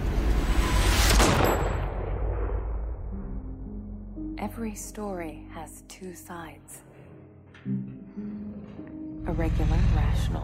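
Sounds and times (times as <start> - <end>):
gunshot: 0.9 - 3.1
speech: 4.5 - 6.9, 7.6 - 8.3, 9.3 - 10.4.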